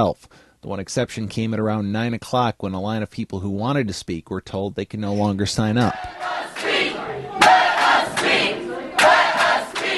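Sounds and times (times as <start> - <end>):
speech: 0.0 - 6.7
protesters chanting at a hearing: 5.8 - 9.9
steady roar of crowd noise: 5.9 - 9.9.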